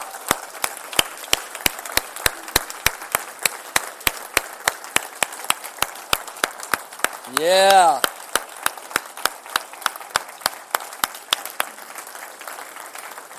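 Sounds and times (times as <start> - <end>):
round of applause: 0.0 - 13.3
speech: 7.3 - 8.1.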